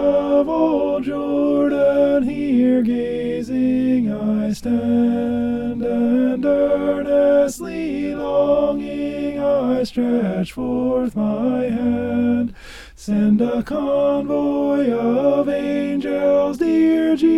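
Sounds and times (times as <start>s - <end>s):
tenor singing heavenly music: 0.0s - 17.3s.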